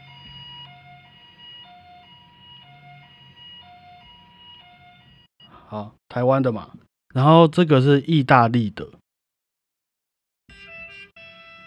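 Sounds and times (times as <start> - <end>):
Taiwanese ambulance siren: 0.0 - 5.6, 10.5 - 11.6
speech: 5.7 - 9.0.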